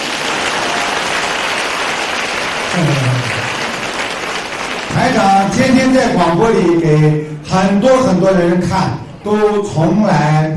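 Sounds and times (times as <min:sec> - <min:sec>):
audience applause: 0:00.0 - 0:05.6
speech: 0:02.8 - 0:03.4, 0:05.0 - 0:10.5.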